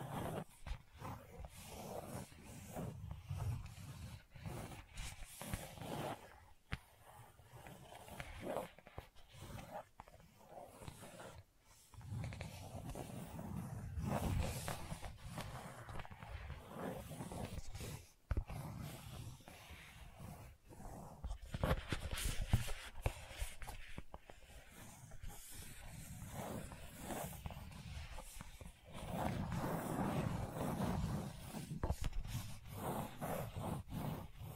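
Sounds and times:
gentle scratching: 0:00.0 - 0:34.5.

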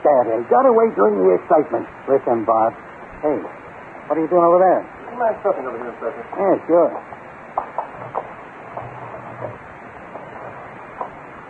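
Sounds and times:
steady hiss: 0:00.0 - 0:11.4
speech: 0:00.1 - 0:07.3
windows being opened and closed: 0:07.8 - 0:11.3.

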